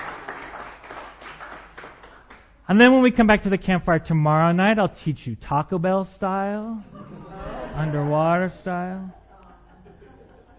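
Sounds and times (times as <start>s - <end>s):
group clapping at a campfire sing-along: 0.0s - 2.5s
speech: 2.7s - 7.2s, 7.8s - 9.2s
laughter: 6.8s - 10.5s.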